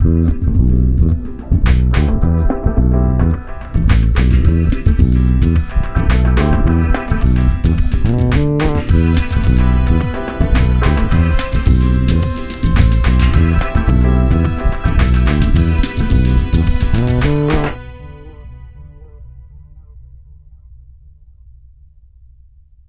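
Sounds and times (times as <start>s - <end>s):
samba bass groove: 0.0s - 18.0s.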